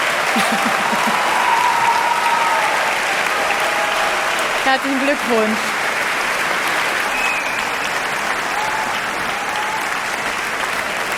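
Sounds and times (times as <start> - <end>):
audience whistles: 0.0 - 4.7, 5.9 - 11.1
laughter: 0.0 - 10.2
audience applause in concert hall: 0.0 - 11.1
speech: 4.7 - 5.7.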